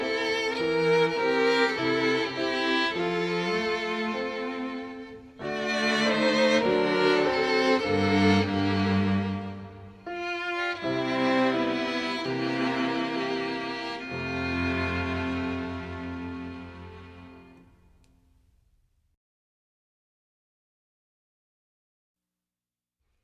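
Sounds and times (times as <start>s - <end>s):
music: 0.0s - 18.5s.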